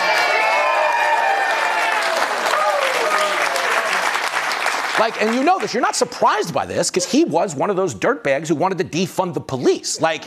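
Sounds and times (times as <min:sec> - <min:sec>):
crowd booing: 0:00.0 - 0:04.3
speech: 0:05.0 - 0:10.2.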